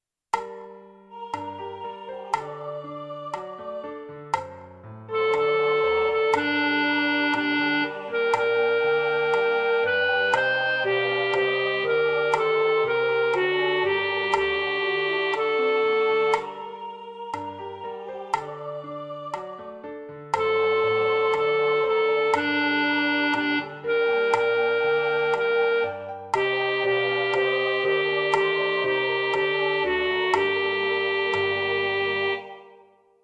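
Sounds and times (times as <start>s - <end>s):
alto voice singing: 1.2s - 4.5s, 5.1s - 33.0s.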